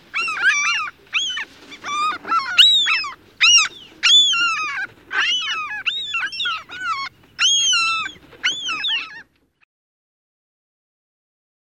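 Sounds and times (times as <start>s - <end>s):
mew gull high mewing calls on the West Coast of the USA: 0.0s - 9.3s.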